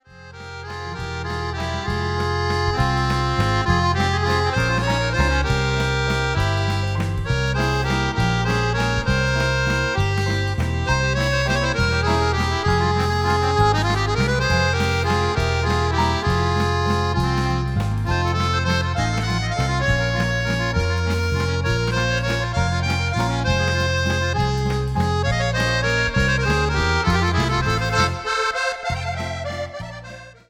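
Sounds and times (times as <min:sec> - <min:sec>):
guinguette waltz music: 0:00.0 - 0:30.4.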